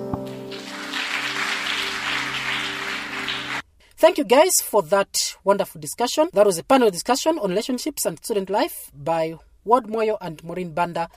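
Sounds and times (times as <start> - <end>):
audience clapping hands: 0.2 - 3.6
speech: 4.0 - 11.1.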